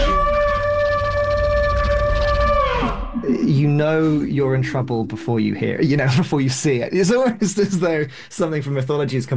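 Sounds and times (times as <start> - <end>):
pitch-shifted layered crane call as dinosaur cry: 0.0 - 3.4
low rumble: 0.0 - 6.4
speech: 3.8 - 9.3.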